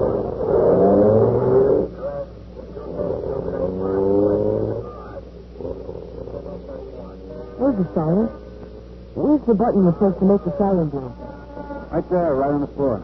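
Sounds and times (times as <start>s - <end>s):
police car engine revving and pulling away: 0.0s - 8.0s
speech: 7.8s - 8.4s, 9.5s - 11.2s, 11.9s - 13.0s.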